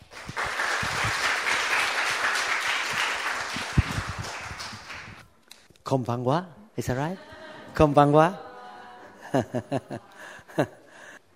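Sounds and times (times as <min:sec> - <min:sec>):
audience applause welcoming a speaker: 0:00.0 - 0:05.2
speech: 0:05.9 - 0:08.4, 0:09.3 - 0:10.8
laughter: 0:06.9 - 0:11.2.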